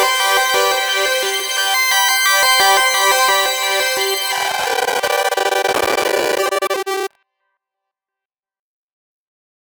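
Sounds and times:
synth: 0.0 - 7.1.

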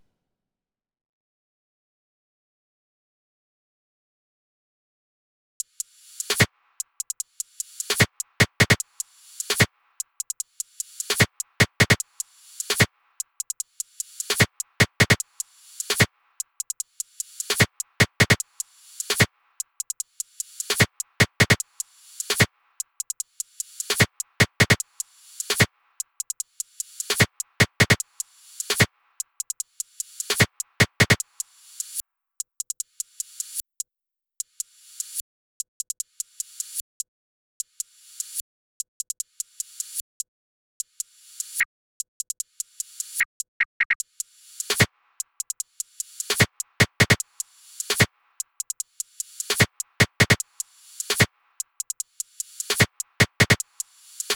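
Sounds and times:
percussion: 5.8 - 32.0, 42.2 - 54.3.

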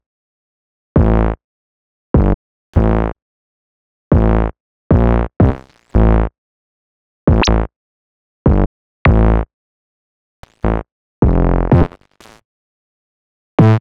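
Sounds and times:
silly isolated bass line: 1.0 - 1.4, 4.2 - 6.3, 7.3 - 7.7, 8.6 - 9.4, 10.7 - 11.9, 13.6 - 13.7.

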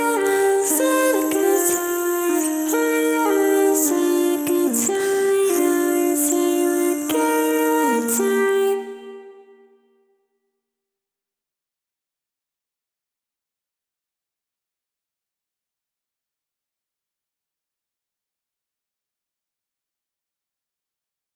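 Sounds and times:
vocals: 0.0 - 9.8.

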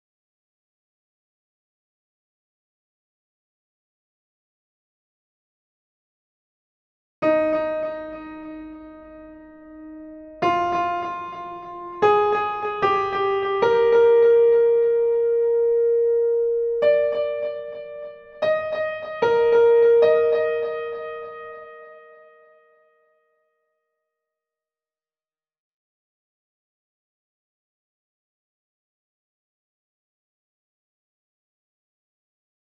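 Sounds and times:
piano: 7.2 - 23.4.

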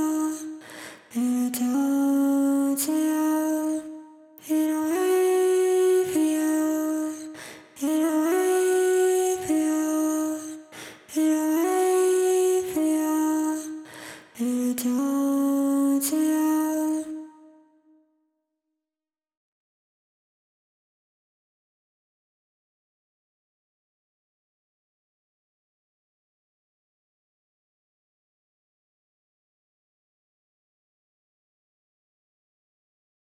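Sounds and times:
vocals: 0.0 - 17.8.

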